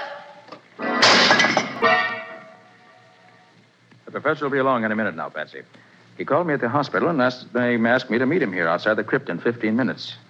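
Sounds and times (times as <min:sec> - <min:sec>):
statue knocked over, falling and crashing: 0:00.8 - 0:02.0
speech: 0:04.2 - 0:10.2.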